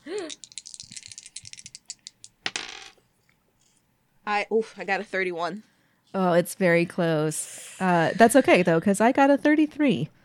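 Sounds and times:
dice rattling and tumbling across a hard surface: 0.3 - 3.0
speech: 4.3 - 10.2.

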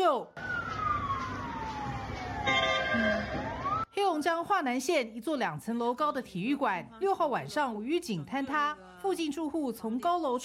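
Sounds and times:
speech: 0.1 - 0.5, 4.2 - 10.4
fire engine siren: 0.4 - 3.9.

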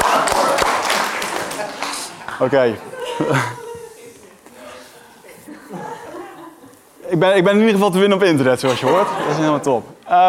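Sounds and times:
audience applauding: 0.0 - 2.3
laughter: 1.2 - 7.0, 8.4 - 9.9
speech: 2.4 - 3.6, 7.1 - 10.2.

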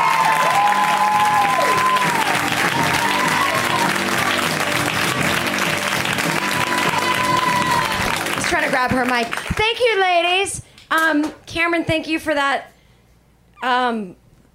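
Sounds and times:
crowd cheering and whistling at a stand-up comedy show: 0.0 - 8.4
audience clapping at a stand-up comedy show: 0.0 - 10.2
speech: 8.8 - 12.7, 13.6 - 14.2.

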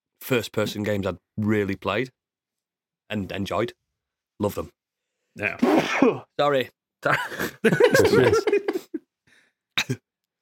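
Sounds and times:
speech: 0.3 - 2.2, 3.1 - 3.8, 4.4 - 4.8, 5.4 - 8.7
sneeze: 5.5 - 6.3
laughter: 7.1 - 9.0
person murmuring: 7.9 - 8.9.

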